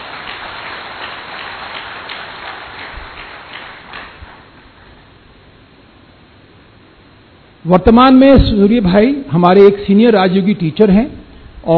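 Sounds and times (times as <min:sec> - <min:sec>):
audience applause: 0:00.0 - 0:04.6
speech: 0:07.6 - 0:11.7.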